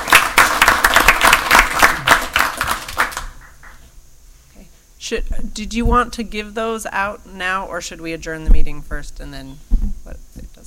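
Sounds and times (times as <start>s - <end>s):
audience applause: 0.0s - 3.8s
speech: 5.1s - 9.7s.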